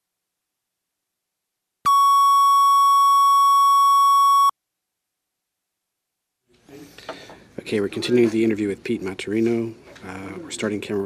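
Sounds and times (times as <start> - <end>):
minus 8 dB film sound-roll reference tone: 1.9 - 4.5
speech: 7.7 - 11.0.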